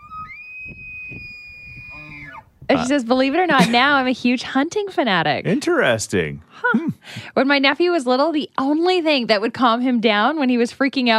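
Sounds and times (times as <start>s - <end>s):
elk bugling call: 0.0s - 3.5s
speech: 2.0s - 11.1s.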